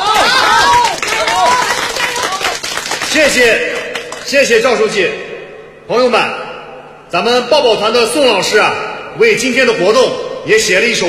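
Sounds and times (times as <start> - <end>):
scattered voices calling and cheering: 0.0 - 3.0
audience applauding: 0.0 - 4.3
speech: 3.1 - 5.2, 5.9 - 6.4, 7.1 - 11.0.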